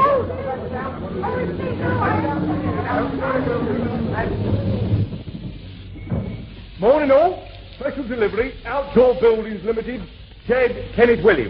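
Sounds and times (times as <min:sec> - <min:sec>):
lorry engine rumbling: 0:00.0 - 0:11.4
speech: 0:01.1 - 0:04.6, 0:06.8 - 0:11.4.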